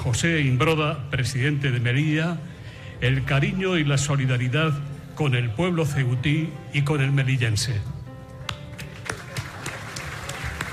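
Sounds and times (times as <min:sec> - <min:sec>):
speech: 0:00.0 - 0:08.0
audience applause: 0:08.9 - 0:10.7.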